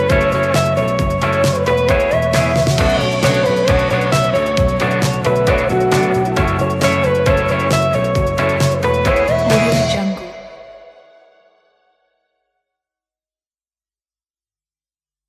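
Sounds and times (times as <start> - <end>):
indie party music: 0.0 - 11.4.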